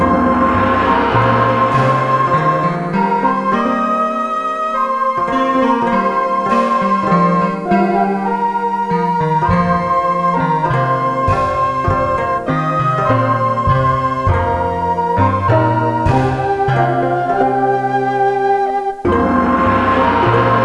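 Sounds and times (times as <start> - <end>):
oriental style music: 0.0 - 20.6.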